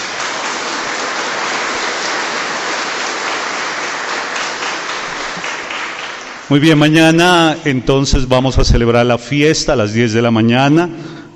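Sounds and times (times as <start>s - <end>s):
applause: 0.0s - 7.0s
speech: 6.5s - 11.1s.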